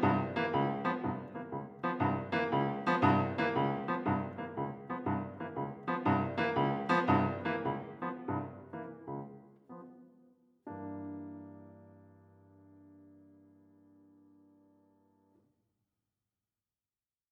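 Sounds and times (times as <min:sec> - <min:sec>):
jazz accompaniment: 0:00.0 - 0:10.0.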